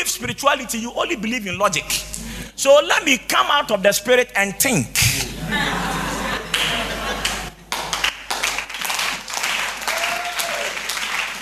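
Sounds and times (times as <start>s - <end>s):
speech: 0.0s - 5.8s
laughter: 5.1s - 7.7s
congregation clapping at a church service: 6.4s - 11.4s.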